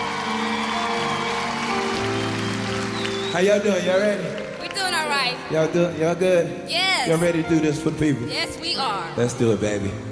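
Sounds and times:
audience applause: 0.0s - 5.5s
speech: 3.4s - 4.4s, 5.0s - 10.0s.

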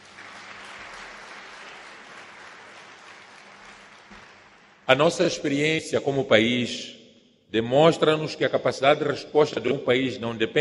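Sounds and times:
audience applause: 0.0s - 4.9s
speech: 4.9s - 10.5s.

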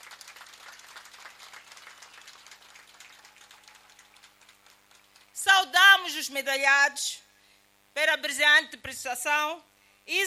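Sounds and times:
audience applause for athletes: 0.0s - 5.4s
speech: 6.2s - 7.2s, 8.0s - 10.2s.

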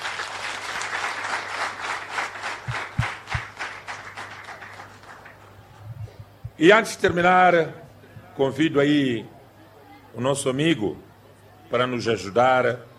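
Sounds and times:
audience applause: 0.0s - 5.8s
speech: 6.6s - 7.8s, 8.4s - 9.4s, 10.1s - 11.0s, 11.7s - 12.9s.

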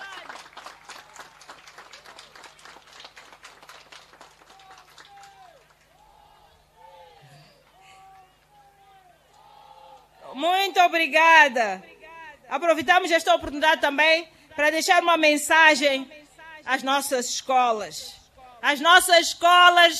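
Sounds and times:
crowd clapping: 0.0s - 6.2s, 7.6s - 8.9s
speech: 10.4s - 11.9s, 12.5s - 19.9s.

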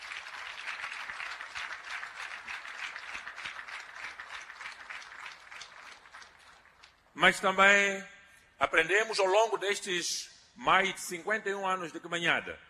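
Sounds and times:
audience applause: 0.0s - 7.1s
speech: 7.2s - 12.6s.

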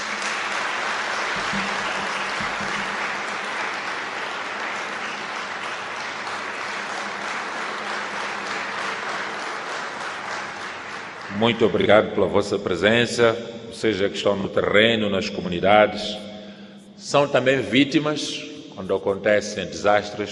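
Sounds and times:
large audience applause: 0.0s - 11.9s
speech: 1.5s - 1.8s, 11.4s - 16.3s, 17.0s - 20.2s.

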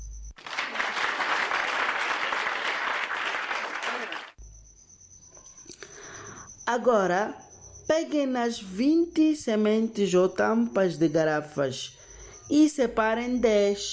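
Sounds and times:
applause from a small group: 0.4s - 4.4s
speech: 6.7s - 13.9s.

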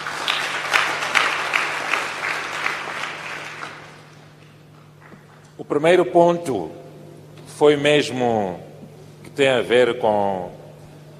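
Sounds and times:
audience applause: 0.0s - 4.3s
speech: 5.6s - 6.8s, 7.6s - 8.7s, 9.3s - 10.6s.

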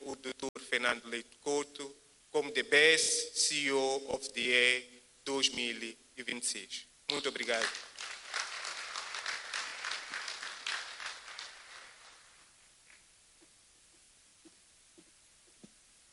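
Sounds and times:
speech: 0.3s - 7.8s
audience applause: 7.5s - 12.5s.

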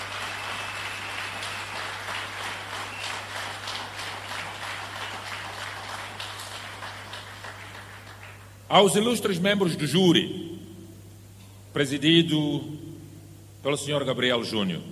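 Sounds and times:
crowd applause: 0.0s - 8.5s
speech: 8.7s - 10.5s, 11.8s - 12.9s, 13.6s - 14.9s.

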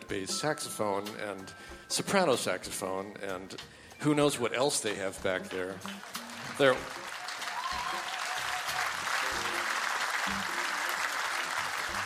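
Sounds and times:
speech: 0.1s - 7.0s
audience applause: 5.8s - 12.0s.

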